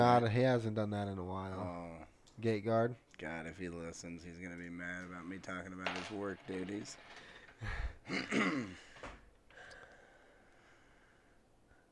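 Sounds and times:
speech: 0.0 - 9.2
breathy noise: 7.1 - 11.8
person clearing throat: 8.0 - 8.9.

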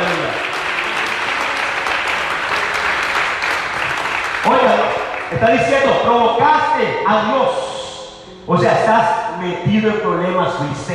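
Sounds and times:
audience applauding loudly: 0.0 - 6.1
speech: 5.4 - 7.7, 8.5 - 10.9.

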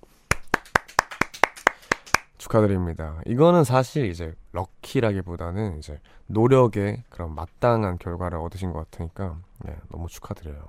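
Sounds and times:
hand clapping: 0.2 - 2.4
speech: 2.5 - 10.6.

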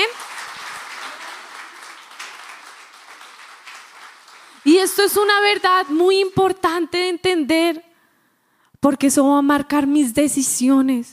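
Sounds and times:
audience applause: 0.0 - 4.7
speech: 4.8 - 7.9, 8.8 - 11.1.

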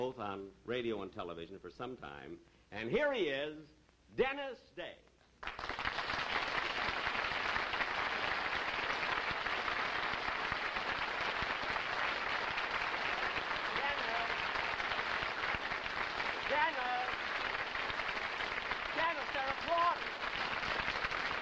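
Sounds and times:
speech: 0.0 - 5.7
audience applause from a large audience: 5.4 - 21.4.

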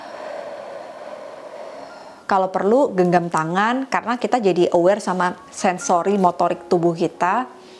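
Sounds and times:
slow exhale: 0.0 - 2.4
speech: 2.3 - 7.6.

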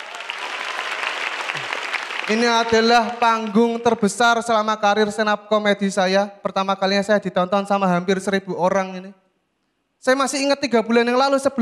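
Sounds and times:
audience applause: 0.0 - 3.8
speech: 2.3 - 9.2, 10.0 - 11.6.

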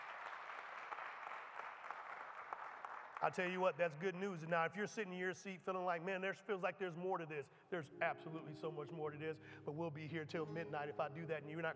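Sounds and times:
hand clapping: 0.0 - 4.2
speech: 3.2 - 11.7.

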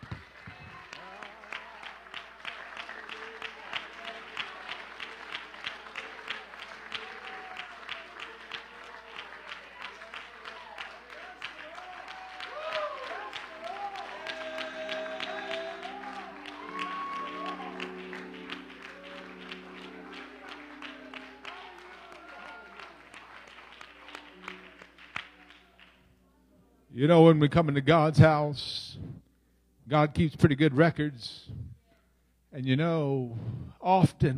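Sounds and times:
audience clapping hands: 0.0 - 26.1
speech: 27.0 - 28.9, 29.9 - 31.5, 32.6 - 34.3.

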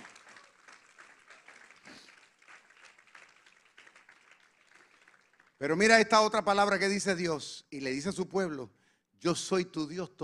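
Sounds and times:
audience applause: 0.0 - 5.9
speech: 5.6 - 10.2.

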